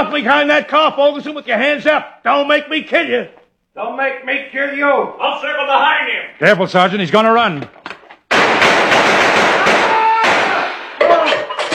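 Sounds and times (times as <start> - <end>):
speech: 0.0 - 7.9
rapid gunfire in a shootout: 8.3 - 10.9.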